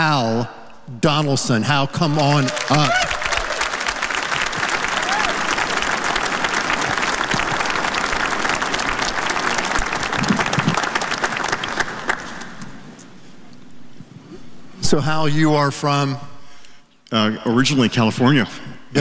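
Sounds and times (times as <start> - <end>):
speech: 0.0 - 3.2, 14.9 - 16.3, 17.1 - 18.9
crowd noise: 2.0 - 13.0
large audience clapping welcoming a speaker onto a stage: 2.0 - 13.0.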